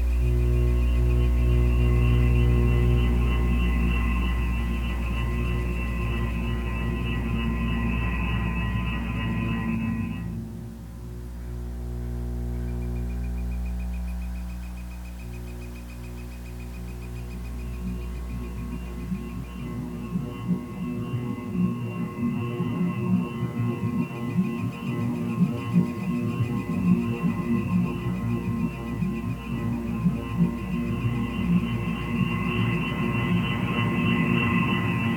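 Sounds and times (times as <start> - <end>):
drone whirling at the waterline: 0.0 - 35.1.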